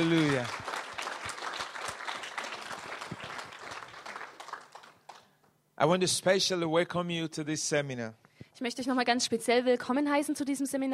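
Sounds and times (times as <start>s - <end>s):
speech: 0.0s - 0.7s, 5.8s - 10.9s
congregation clapping in praise of Jesus at a church seminar: 0.0s - 5.4s.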